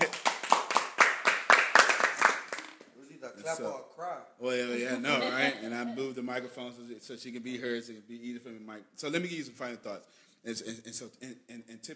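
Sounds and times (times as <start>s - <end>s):
audience clapping: 0.0s - 2.9s
speech: 3.4s - 11.9s.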